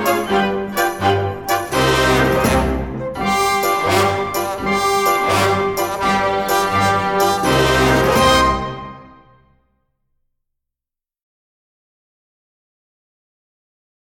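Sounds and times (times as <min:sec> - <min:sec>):
pirate march music: 0:00.0 - 0:09.5.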